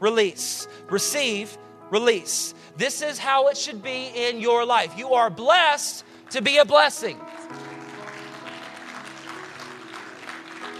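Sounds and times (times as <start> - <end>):
speech: 0.0 - 7.7
sustained low musical tones: 0.0 - 10.7
audience clapping: 6.2 - 10.7.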